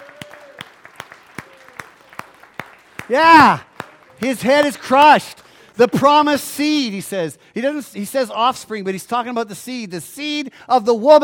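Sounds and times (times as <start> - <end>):
rhythmic clapping from a church audience celebrating: 0.0 - 6.4
speech: 3.1 - 11.2.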